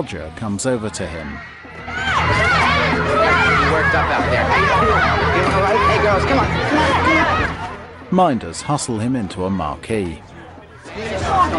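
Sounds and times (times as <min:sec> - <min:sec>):
crowd chatter from concertgoers heading towards a concert venue: 0:00.0 - 0:11.5
speech: 0:00.0 - 0:11.5
shouts and cheers: 0:01.2 - 0:07.8.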